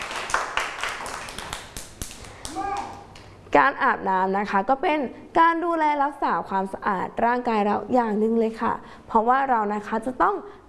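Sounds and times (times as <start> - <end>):
clapping for a child: 0.0 - 3.3
speech: 3.6 - 10.6.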